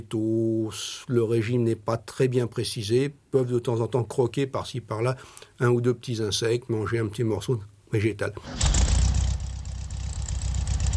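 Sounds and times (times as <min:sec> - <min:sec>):
speech: 0:00.0 - 0:08.8
car engine idling: 0:08.6 - 0:10.9.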